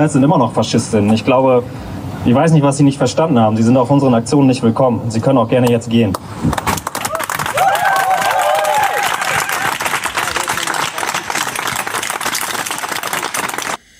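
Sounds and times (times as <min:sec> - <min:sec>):
speech: 0:00.0 - 0:06.6
crowd of protesters clapping at a demonstration: 0:06.5 - 0:13.8.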